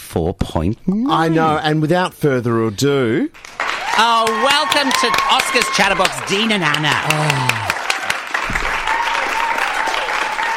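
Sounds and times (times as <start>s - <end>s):
speech: 0.1s - 7.7s
applause: 3.4s - 10.5s.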